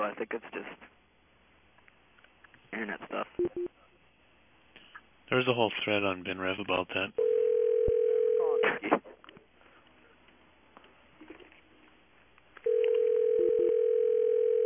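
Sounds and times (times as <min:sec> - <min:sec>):
speech: 0:00.1 - 0:01.0, 0:02.7 - 0:03.8, 0:05.3 - 0:07.3
telephone dial tone: 0:07.2 - 0:08.6, 0:12.6 - 0:14.6.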